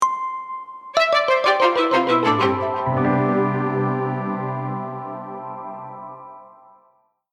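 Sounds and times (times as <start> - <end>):
jingle: 1.0 - 6.8.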